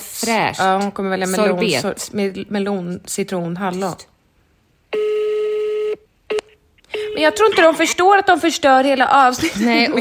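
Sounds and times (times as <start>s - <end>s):
speech: 0.2s - 4.1s, 7.2s - 9.9s
telephone dialing tones: 5.0s - 7.3s.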